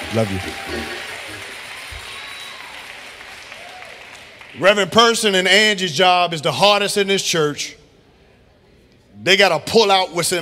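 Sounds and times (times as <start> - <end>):
audience clapping: 0.0 - 5.0
speech: 0.1 - 1.0, 4.6 - 7.8, 9.2 - 10.4.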